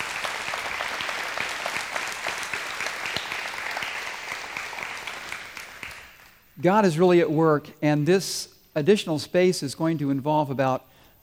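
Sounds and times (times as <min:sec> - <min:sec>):
audience applause: 0:00.0 - 0:06.4
speech: 0:06.6 - 0:11.2.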